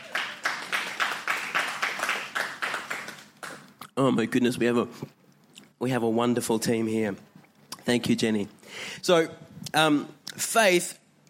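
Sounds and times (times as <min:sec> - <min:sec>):
audience round of applause: 0:00.0 - 0:03.7
speech: 0:04.0 - 0:05.2, 0:05.8 - 0:07.3, 0:07.9 - 0:11.0.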